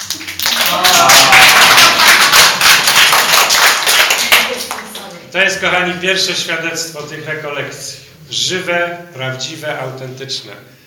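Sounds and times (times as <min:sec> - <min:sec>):
crowd applauding: 0:00.0 - 0:05.1
speech: 0:05.5 - 0:10.8.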